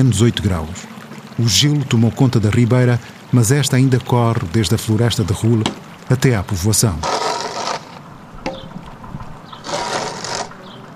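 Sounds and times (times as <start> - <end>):
speech: 0.0 - 7.2
shovelling snow: 7.0 - 8.0, 9.6 - 10.5.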